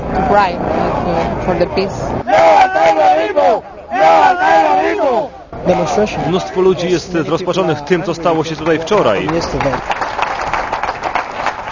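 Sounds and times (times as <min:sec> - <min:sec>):
murmur of voices: 0:00.0 - 0:09.9
speech: 0:00.3 - 0:10.2
street crowd applauding outdoors: 0:08.1 - 0:11.7.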